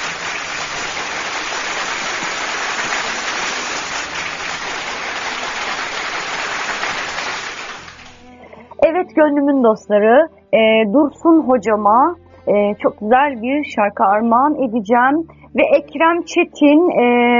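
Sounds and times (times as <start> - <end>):
applause after a poem reading: 0.0 - 8.3
speech: 9.2 - 17.3.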